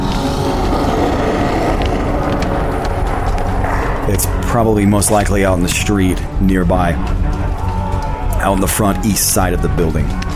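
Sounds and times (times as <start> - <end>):
loud deep creature roar echoing outside: 0.0 - 4.4
speech: 4.2 - 7.2, 8.4 - 10.2.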